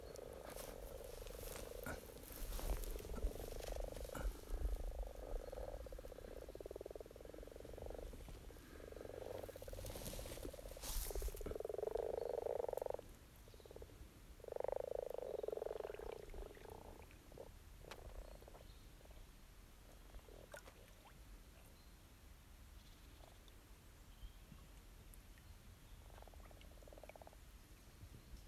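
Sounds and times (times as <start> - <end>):
frogs on Mull: 0.0 - 19.1, 26.0 - 27.4.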